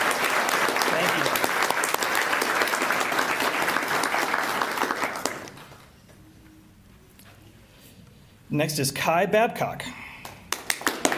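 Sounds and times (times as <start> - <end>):
audience applause: 0.0 - 5.8, 10.5 - 11.1
speech: 8.5 - 10.0.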